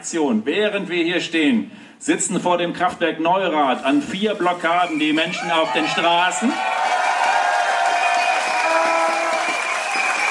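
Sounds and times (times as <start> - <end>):
speech: 0.0 - 6.9
crowd clapping at outdoor rally: 4.8 - 10.2.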